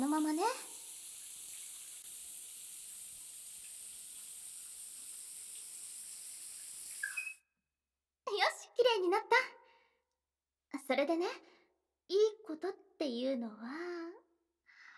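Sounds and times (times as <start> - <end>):
shower water rinsing foam off a back: 0.0 - 7.4
speech: 9.0 - 9.5, 10.9 - 11.5, 12.1 - 14.0.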